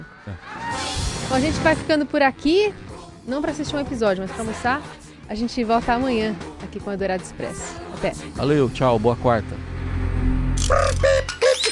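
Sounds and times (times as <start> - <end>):
speech: 0.2 - 0.6, 1.3 - 9.7, 10.7 - 11.2
door creaking open: 10.5 - 11.7.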